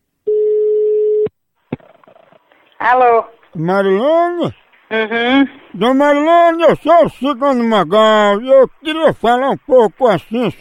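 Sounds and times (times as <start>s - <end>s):
telephone ringing tone while a call is placed: 0.3s - 1.2s
speech: 2.8s - 10.5s.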